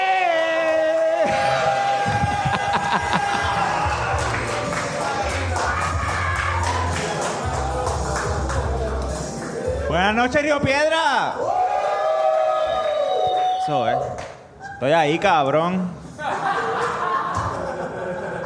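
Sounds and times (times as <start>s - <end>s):
crowd applauding and cheering: 0.0s - 10.4s, 11.3s - 14.6s
laughter: 1.2s - 6.0s, 16.1s - 18.4s
speech: 10.1s - 11.5s, 13.7s - 16.0s.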